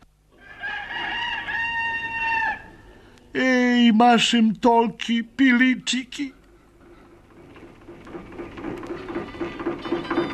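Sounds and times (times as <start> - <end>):
rooster crowing: 0.3 - 3.0
speech: 3.4 - 6.4.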